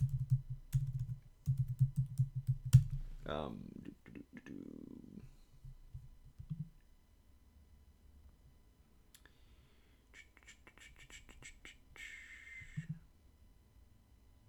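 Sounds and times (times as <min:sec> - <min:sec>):
rapid typing on a computer keyboard: 0:00.0 - 0:03.2
person speaking: 0:02.8 - 0:05.3.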